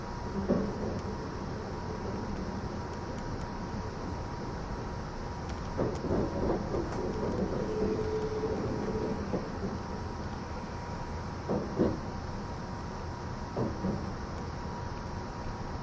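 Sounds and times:
E261 series Saphir Odoriko limited express train rumble: 0.0s - 15.8s
faint constant whine: 0.0s - 15.8s
clunks and rattles: 5.6s - 10.2s, 11.4s - 12.1s, 13.5s - 14.2s.

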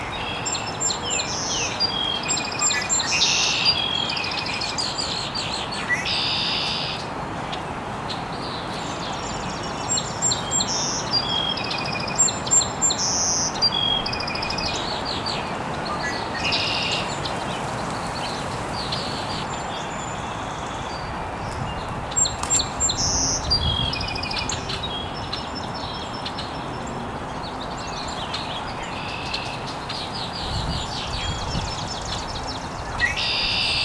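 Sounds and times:
birds chirping: 0.0s - 33.8s.

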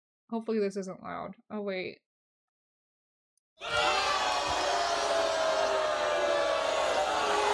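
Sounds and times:
speech: 0.3s - 2.1s
crowd booing sound effect: 3.6s - 7.5s.

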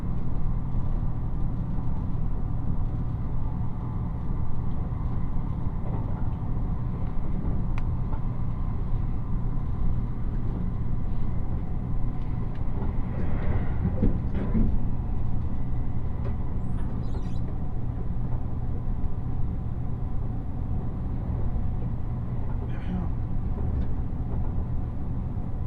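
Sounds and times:
Nishi-Kyushu Shinkansen train rumble and hum from Nagasaki toward Saga: 0.0s - 25.6s
light clicks and squeaks: 16.6s - 17.5s.

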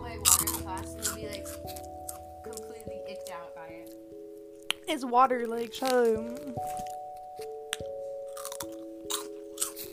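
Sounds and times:
person chomping on food near microphone: 0.2s - 2.6s, 5.8s - 9.9s
speech: 4.9s - 6.8s.

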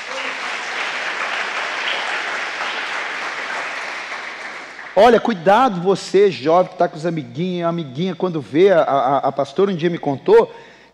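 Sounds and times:
audience applause: 0.0s - 5.7s
speech: 5.0s - 10.7s.

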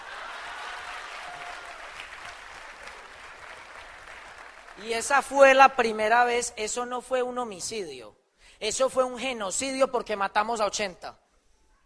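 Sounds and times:
audience applause: 0.0s - 4.8s
speech: 4.8s - 11.2s.

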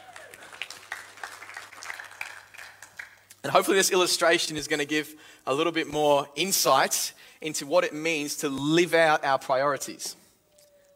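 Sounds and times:
audience round of applause: 0.0s - 3.3s
speech: 3.4s - 10.2s.

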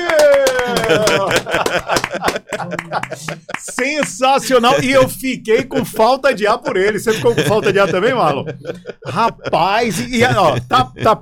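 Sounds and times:
hand clapping: 0.0s - 5.0s
laughter: 0.0s - 11.2s
speech: 0.9s - 11.2s.

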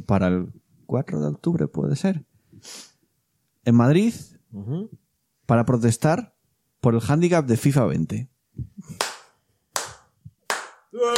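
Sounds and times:
speech: 0.0s - 2.9s, 3.6s - 9.0s, 11.0s - 11.1s
hands clapping: 8.8s - 11.1s.

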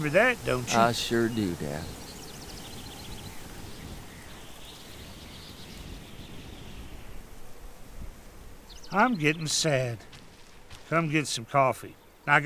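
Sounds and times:
speech: 0.0s - 2.0s, 8.9s - 10.1s, 10.9s - 12.4s
wind blowing through trees: 0.0s - 12.4s.

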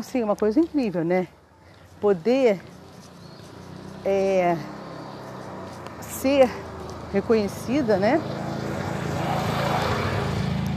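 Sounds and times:
speech: 0.0s - 1.4s, 2.0s - 2.8s, 4.0s - 4.8s, 6.2s - 8.4s
noisy quad bike passing: 1.7s - 10.7s.

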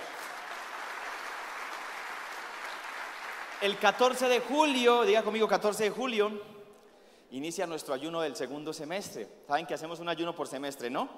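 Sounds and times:
audience applauding loudly: 0.0s - 4.8s
speech: 3.6s - 6.6s, 7.3s - 11.1s.

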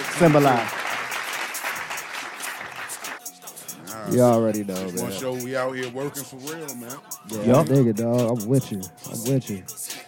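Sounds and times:
small group clapping: 0.0s - 3.3s
speech: 0.2s - 0.8s, 4.1s - 9.8s.

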